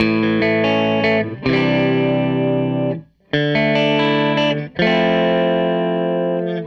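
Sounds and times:
guitar loop: 0.0s - 6.6s.

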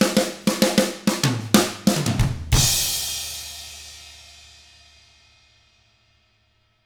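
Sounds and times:
hard rock drums: 0.0s - 4.6s.

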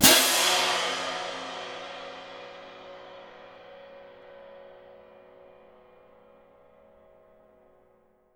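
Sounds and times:
percussion cymbal: 0.0s - 6.0s.

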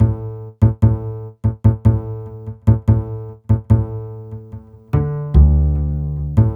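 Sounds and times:
upright bass: 0.0s - 6.5s.

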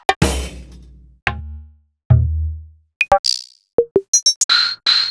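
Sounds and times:
Roland BK-5 keyboard percussion: 0.2s - 1.5s, 3.0s - 5.0s.

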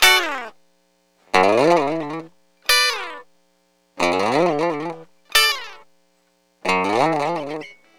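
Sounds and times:
dry lounge guitar in D: 0.0s - 0.6s, 1.3s - 3.4s, 4.0s - 5.9s, 6.6s - 7.9s.

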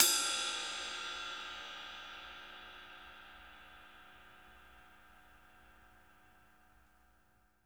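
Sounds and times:
ride cymbal: 0.0s - 5.2s.

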